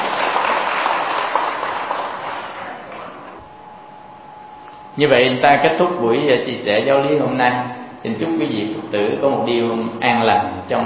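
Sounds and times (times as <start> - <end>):
audience clapping at a Buddhist dharma talk: 0.0 - 3.4
speech: 5.0 - 10.8.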